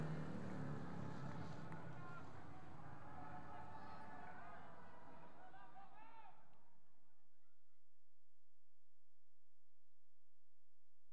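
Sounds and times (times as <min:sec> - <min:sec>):
motorbikes racing: 0:00.0 - 0:05.1.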